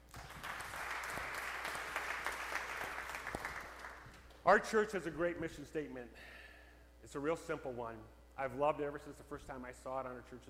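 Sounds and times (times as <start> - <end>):
audience clapping: 0.0 - 4.4
speech: 4.5 - 6.4, 7.0 - 10.4.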